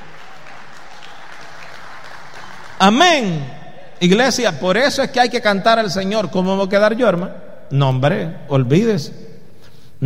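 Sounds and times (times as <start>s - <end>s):
church congregation clapping during a worship service: 0.0s - 4.9s
speech: 2.8s - 9.2s.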